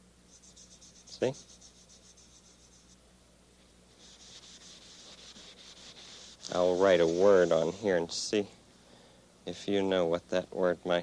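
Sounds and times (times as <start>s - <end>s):
eraser wiping chalk off a chalkboard: 0.3s - 3.0s, 4.0s - 8.2s
speech: 1.2s - 1.5s, 6.5s - 8.6s, 9.5s - 11.0s.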